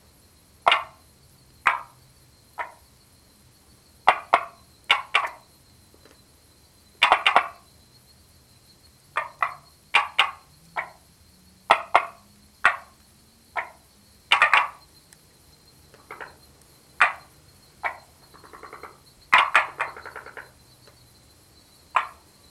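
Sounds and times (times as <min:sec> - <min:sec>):
frog giving short sharp knocking clucks: 0:00.6 - 0:01.0, 0:01.6 - 0:02.0, 0:02.6 - 0:02.8, 0:04.0 - 0:05.4, 0:07.0 - 0:07.6, 0:09.2 - 0:11.0, 0:11.7 - 0:14.8, 0:15.9 - 0:20.6, 0:21.9 - 0:22.2.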